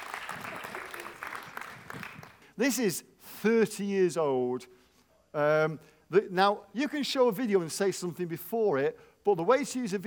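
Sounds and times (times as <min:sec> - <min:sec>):
people applauding: 0:00.0 - 0:02.4
speech: 0:02.6 - 0:10.0.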